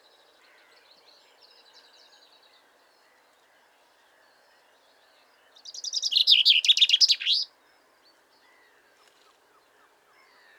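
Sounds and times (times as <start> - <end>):
common chaffinch Fringilla coelebs calling: 5.8 - 7.5.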